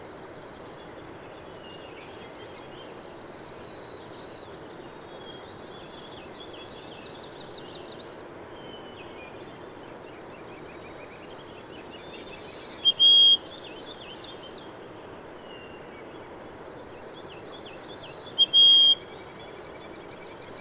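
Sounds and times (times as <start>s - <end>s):
bird whistling: 2.9s - 4.5s, 11.7s - 13.4s, 17.4s - 19.0s.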